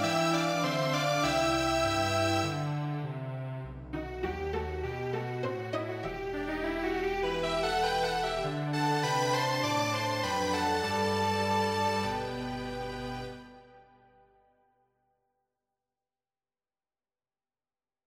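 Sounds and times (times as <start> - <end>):
string ensemble: 0.0 - 13.8
tango orchestra: 0.0 - 13.8.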